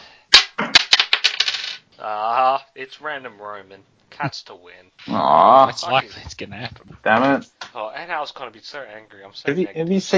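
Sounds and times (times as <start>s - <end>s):
tossed coin landing and bouncing: 0.4s - 1.8s
speech: 2.0s - 10.1s.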